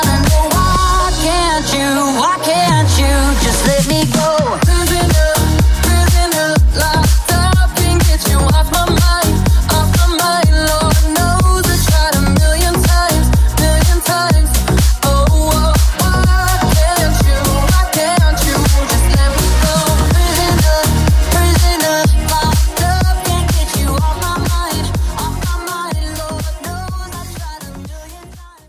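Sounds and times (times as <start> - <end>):
slap house music: 0.0 - 28.6.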